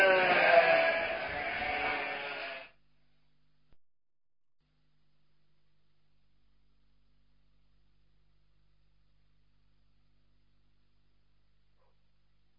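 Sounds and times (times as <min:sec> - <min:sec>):
sheep bleating: 0:00.0 - 0:02.8.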